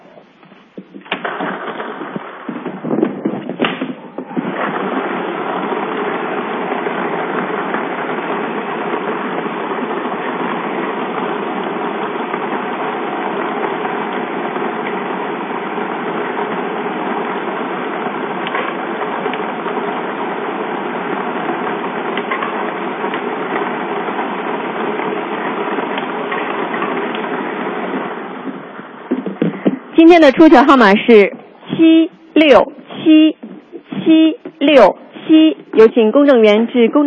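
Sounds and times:
lottery ball drawing machine whirring and rattling at a welfare lottery 3D draw: 1.1 - 29.5
speech: 30.1 - 33.4, 34.1 - 37.0.

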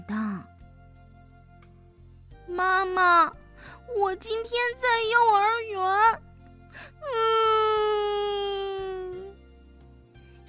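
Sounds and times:
speech: 2.6 - 6.2
voice imitating the young elephant Nini crying: 7.0 - 9.3.

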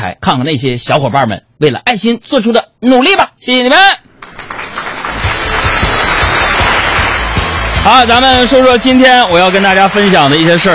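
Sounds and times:
speech: 0.0 - 4.1, 7.8 - 10.7
audience applause: 4.1 - 10.7.

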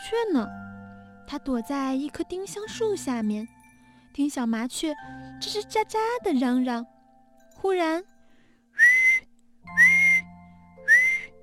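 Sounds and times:
speech: 0.1 - 0.6, 1.3 - 3.6, 4.2 - 6.9, 7.6 - 8.1
whistle blowing: 8.8 - 11.3.

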